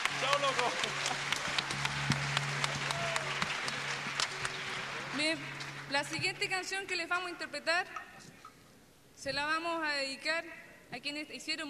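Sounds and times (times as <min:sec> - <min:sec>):
audience applause: 0:00.0 - 0:06.6
speech: 0:05.3 - 0:08.1, 0:09.2 - 0:11.6.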